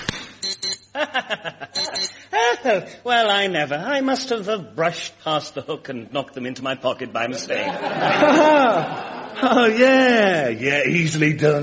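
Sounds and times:
key finder keyring bleeping: 0:00.4 - 0:01.0, 0:01.8 - 0:02.2
laughter: 0:01.0 - 0:02.8, 0:07.3 - 0:10.4
speech: 0:01.2 - 0:01.9, 0:02.6 - 0:11.6.

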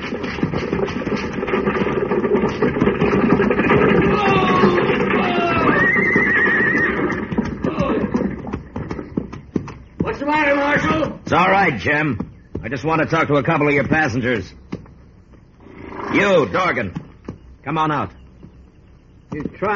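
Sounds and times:
hoofbeats of horses ridden forward by a posse: 0:00.0 - 0:19.7
horse whinnying: 0:02.9 - 0:08.7, 0:15.6 - 0:16.6
speech: 0:11.8 - 0:14.6, 0:16.1 - 0:17.0, 0:17.6 - 0:18.2, 0:19.3 - 0:19.7.

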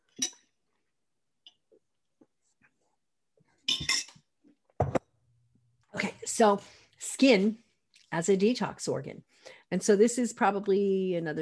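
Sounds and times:
glassware clinking while taking water: 0:00.1 - 0:00.5, 0:03.7 - 0:04.2
speech: 0:06.4 - 0:11.4.

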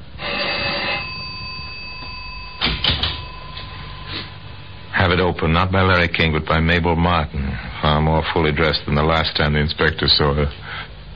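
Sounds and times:
buzzing electric doorbell: 0:00.2 - 0:05.1
speech: 0:05.2 - 0:10.9.

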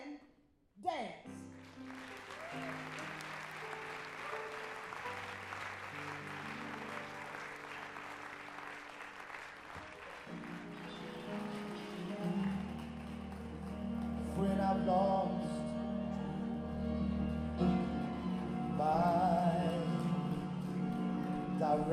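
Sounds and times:
speech: 0:00.8 - 0:02.2
audience applause welcoming a dance group to the stage: 0:01.5 - 0:21.9.

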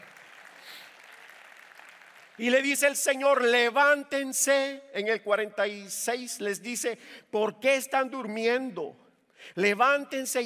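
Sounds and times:
audience applause: 0:00.0 - 0:02.6
speech: 0:02.4 - 0:10.4.

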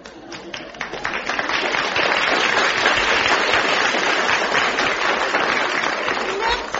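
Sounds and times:
audience applause: 0:00.0 - 0:06.7.

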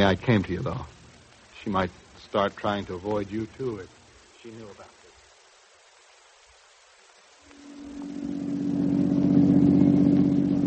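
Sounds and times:
speech: 0:00.0 - 0:00.9, 0:01.6 - 0:04.9
car engine humming as the vehicle drives: 0:07.5 - 0:10.6.

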